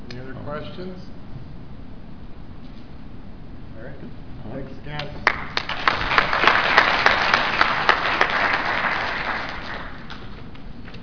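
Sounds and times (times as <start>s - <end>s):
speech: 0.5s - 1.2s, 3.8s - 5.8s
audience applause after a talk: 5.2s - 10.3s.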